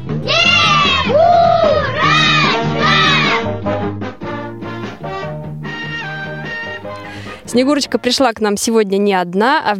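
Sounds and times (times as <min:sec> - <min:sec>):
crowd cheering: 0:00.2 - 0:03.5
crowd of mostly children calling out a name in unison: 0:00.2 - 0:03.5
speech: 0:07.5 - 0:09.7.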